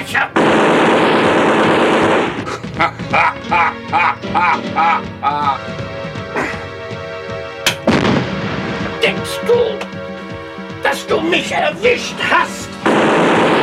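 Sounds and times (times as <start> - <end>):
hand grenade explosion in a German wartime radio drama: 0.4 - 2.9, 7.8 - 9.2, 12.8 - 13.6
laughter: 2.4 - 5.7, 6.3 - 6.7
speech: 3.5 - 5.8, 9.3 - 9.8, 10.9 - 12.6
sharp bang: 7.6 - 9.9.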